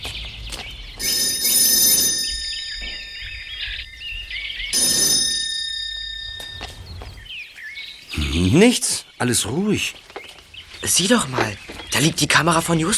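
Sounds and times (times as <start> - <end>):
doorbell ringing: 1.0 - 7.3
speech: 8.5 - 10.1, 10.8 - 12.9.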